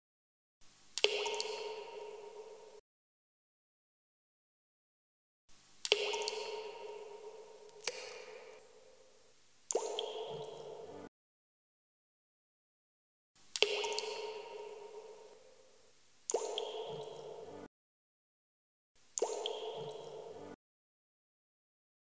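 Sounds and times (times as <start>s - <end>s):
falling drops: 1.0s - 2.8s, 5.8s - 8.6s, 9.7s - 11.1s, 13.5s - 15.4s, 16.3s - 17.7s, 19.2s - 20.6s.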